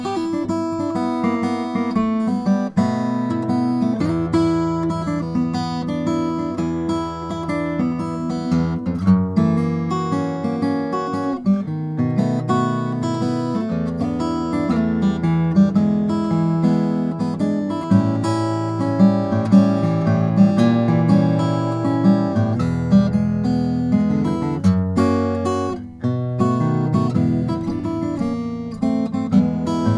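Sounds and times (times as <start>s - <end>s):
custom acoustic guitar of African blackwood playing: 0.0s - 29.9s.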